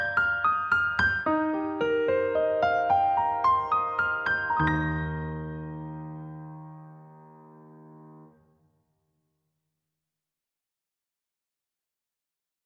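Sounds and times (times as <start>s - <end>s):
piano loop of a traditional Christmas carol: 0.0s - 8.5s.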